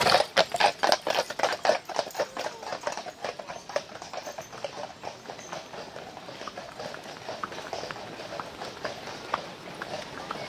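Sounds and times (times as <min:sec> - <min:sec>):
horse hooves on the street: 0:00.0 - 0:10.4.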